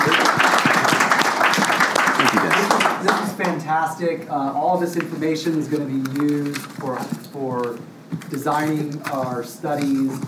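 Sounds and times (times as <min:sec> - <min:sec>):
audience applause: 0:00.0 - 0:03.6
speech: 0:03.7 - 0:10.2.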